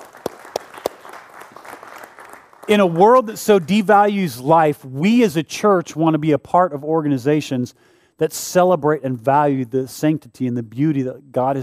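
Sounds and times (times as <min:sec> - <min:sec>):
sharp hand claps: 0:00.0 - 0:04.0
speech: 0:02.7 - 0:11.6.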